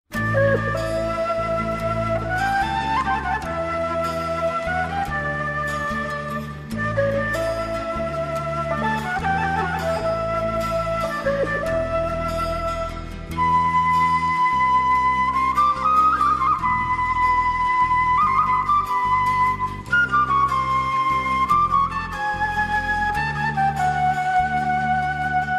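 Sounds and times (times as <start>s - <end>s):
kaval: 0.1s - 25.5s.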